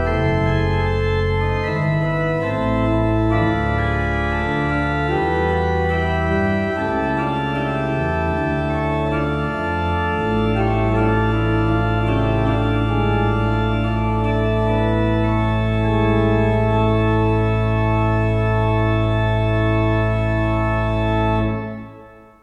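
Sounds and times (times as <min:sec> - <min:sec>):
pipe organ: 0:00.0 - 0:22.4.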